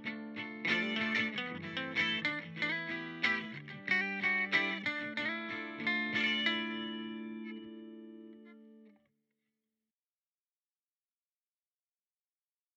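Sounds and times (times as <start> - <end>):
electric guitar through Boss GT-1000 Core Deluxe Reverb amp model: 0.0 - 9.0.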